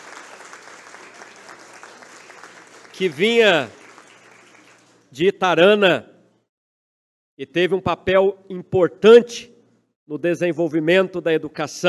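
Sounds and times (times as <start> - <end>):
crowd clapping for an award winner at a municipal ceremony: 0.0 - 5.2
speech: 3.0 - 3.8, 5.1 - 6.1, 7.4 - 9.5, 10.1 - 11.8.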